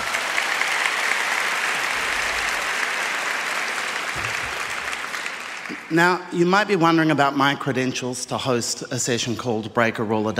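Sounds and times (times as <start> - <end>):
audience applause: 0.0 - 6.2
speech: 5.9 - 10.3.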